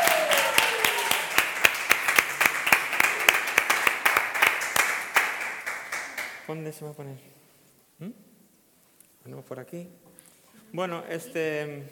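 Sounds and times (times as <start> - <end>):
audience applause: 0.0 - 6.4
speech: 6.5 - 7.4, 8.0 - 8.3, 9.2 - 11.8.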